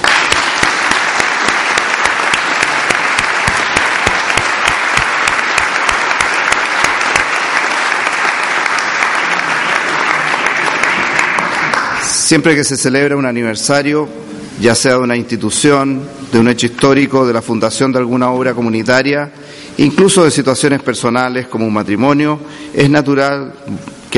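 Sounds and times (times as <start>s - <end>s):
audience applause: 0.0s - 12.2s
speech: 12.3s - 24.1s.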